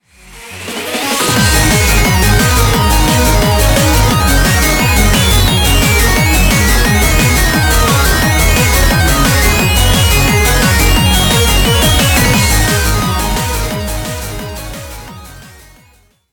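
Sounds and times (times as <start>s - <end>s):
background music crossfade: 0.1s - 16.3s.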